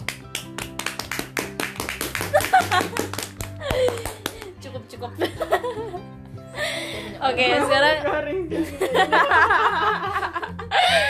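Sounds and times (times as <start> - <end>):
hand clapping: 0.0 - 4.6
laughter: 2.3 - 4.0, 8.5 - 11.0
speech: 5.0 - 6.2, 7.2 - 10.3.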